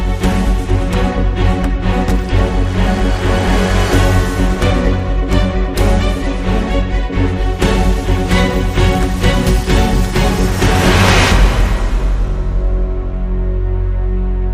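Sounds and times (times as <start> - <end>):
dramatic sting: 0.1 - 14.4.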